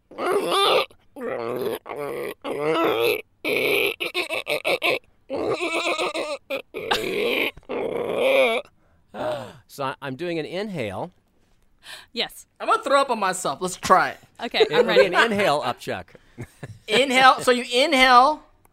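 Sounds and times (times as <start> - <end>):
person imitating an ostrich-horse creature: 0.1 - 9.4
speech: 9.8 - 11.2, 12.1 - 18.5.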